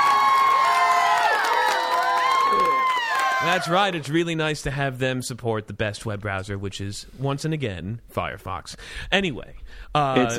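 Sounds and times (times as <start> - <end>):
studio audience cheering: 0.0 - 4.1
speech: 3.4 - 10.3.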